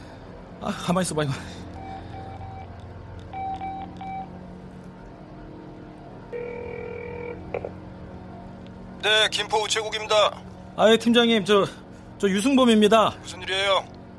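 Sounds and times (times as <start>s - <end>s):
speech: 0.6s - 1.6s, 9.0s - 14.0s
outgoing phone call ringing tones: 3.3s - 4.4s, 6.3s - 7.8s.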